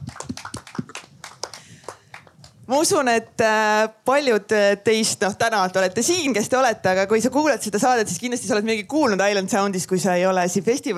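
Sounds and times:
audience applause: 0.0s - 2.5s
speech: 2.7s - 10.9s.

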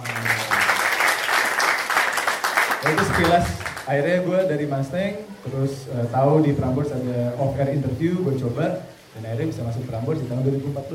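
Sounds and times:
applause: 0.0s - 3.9s
speech: 2.8s - 10.9s.

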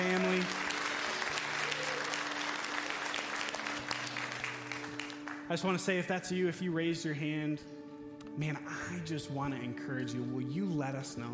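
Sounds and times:
church congregation applauding new members: 0.0s - 6.0s
speech: 5.5s - 7.8s, 8.4s - 11.3s.

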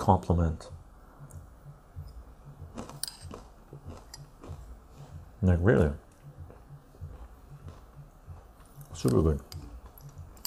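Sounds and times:
speech: 0.0s - 0.8s, 5.4s - 6.0s, 9.0s - 9.6s
low steady noise: 0.0s - 10.4s
crunchy chewing of salted roasted sunflower seeds: 2.6s - 5.2s.

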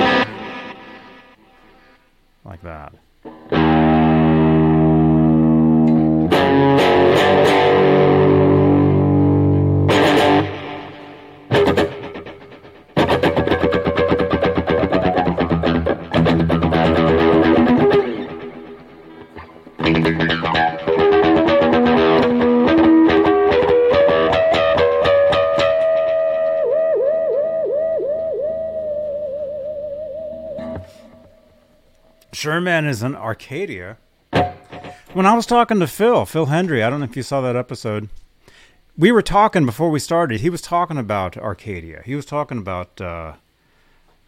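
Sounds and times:
guitar through stereo delay effect: 0.0s - 1.9s, 3.2s - 32.2s, 34.3s - 35.2s
speech: 2.5s - 3.1s, 32.5s - 34.0s, 35.1s - 38.2s, 39.0s - 43.4s.

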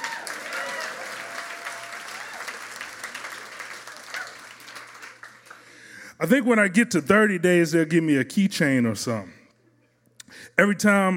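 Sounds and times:
audience applause: 0.0s - 5.8s
speech: 6.2s - 9.4s, 10.6s - 11.1s.

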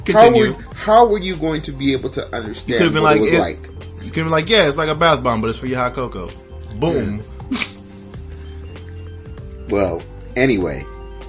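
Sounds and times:
speech: 0.1s - 7.7s, 9.7s - 11.0s
person coughing: 7.5s - 7.8s.

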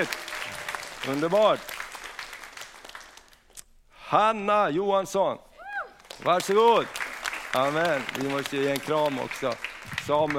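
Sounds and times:
speech: 0.0s - 0.2s, 1.0s - 1.8s, 4.1s - 5.5s, 6.2s - 10.3s
audience applause: 0.0s - 3.4s, 6.0s - 10.3s.

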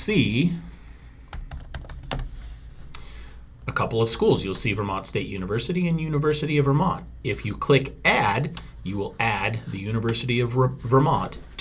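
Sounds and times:
speech: 0.0s - 0.7s, 3.7s - 11.5s
typing on a computer keyboard: 1.3s - 2.3s.

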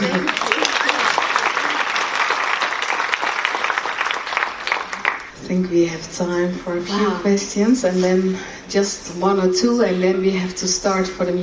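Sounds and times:
audience applause: 0.0s - 5.3s
speech: 5.6s - 11.4s.

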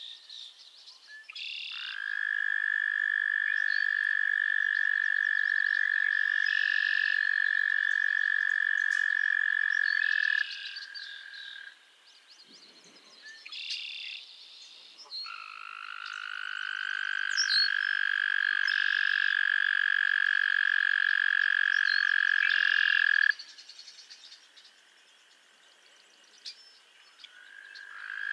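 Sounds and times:
frogs trilling: 1.3s - 11.9s, 15.1s - 23.7s, 26.8s - 28.3s.

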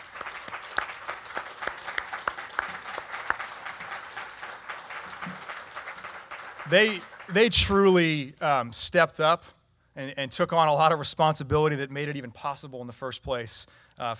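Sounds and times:
round of applause: 0.0s - 8.0s
speech: 6.7s - 14.1s.

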